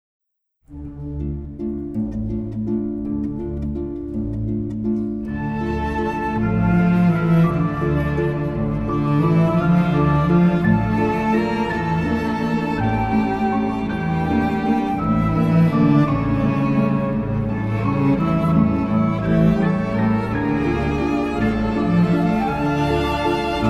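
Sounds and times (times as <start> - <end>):
waltz music: 0.7 - 23.6.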